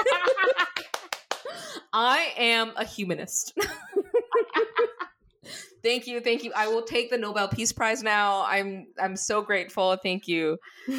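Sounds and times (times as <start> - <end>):
laughter: 0.0 - 1.0, 3.6 - 5.1
hand clapping: 0.0 - 1.6
speech: 2.0 - 3.9, 5.5 - 10.9.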